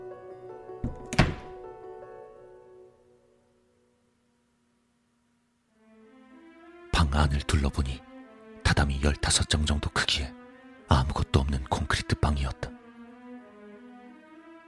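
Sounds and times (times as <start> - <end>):
door closing softly: 0.8 - 1.6
speech: 7.2 - 8.1, 8.7 - 12.7.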